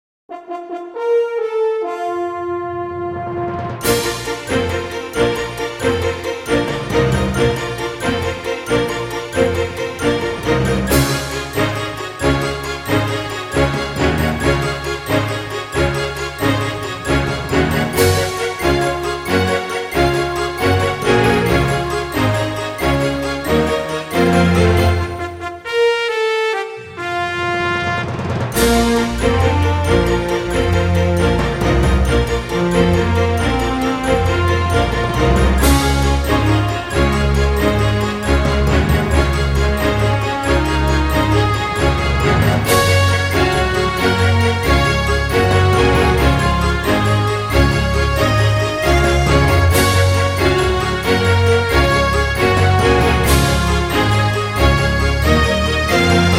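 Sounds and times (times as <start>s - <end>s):
documentary background music: 0.3s - 56.3s.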